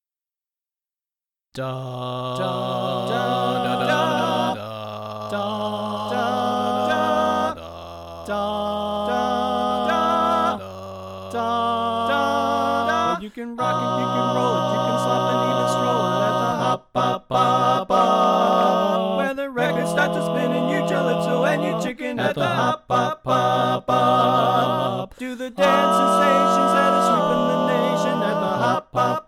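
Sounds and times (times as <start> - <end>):
tenor singing: 1.6 - 29.2.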